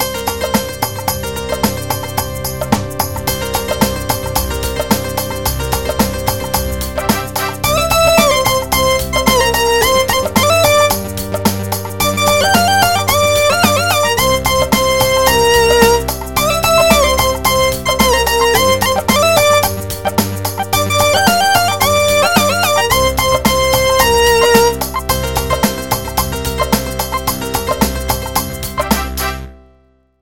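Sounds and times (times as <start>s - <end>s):
Punjabi beat: 0.0s - 29.5s.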